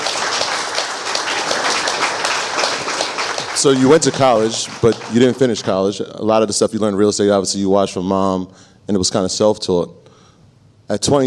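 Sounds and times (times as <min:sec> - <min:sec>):
applause: 0:00.0 - 0:05.9
speech: 0:03.6 - 0:10.1, 0:10.9 - 0:11.2.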